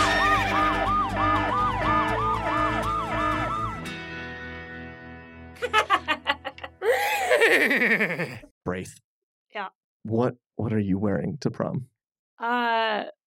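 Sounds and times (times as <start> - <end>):
alarm siren sound effect: 0.0 - 4.1
laughter: 5.6 - 8.4
speech: 7.6 - 13.2.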